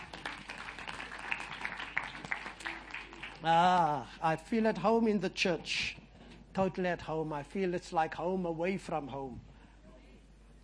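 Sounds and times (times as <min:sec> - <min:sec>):
audience clapping hands: 0:00.0 - 0:04.1
speech: 0:03.4 - 0:06.0, 0:06.6 - 0:09.5.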